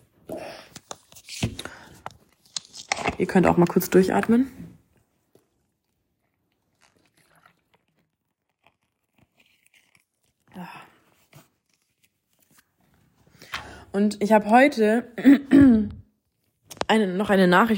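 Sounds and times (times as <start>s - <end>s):
speech: 3.2s - 4.6s, 14.0s - 15.8s, 16.9s - 17.7s
person taking a drink: 5.3s - 10.7s.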